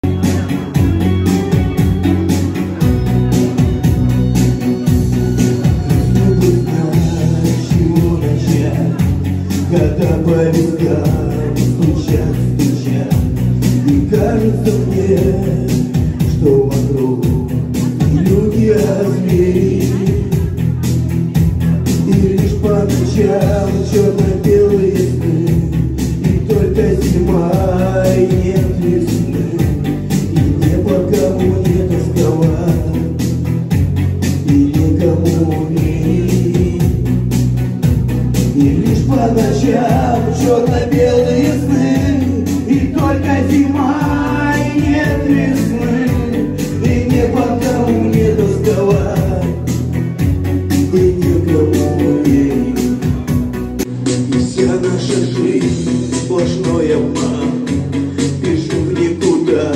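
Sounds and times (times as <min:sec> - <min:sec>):
Russian chanson song: 0:00.0 - 0:59.7.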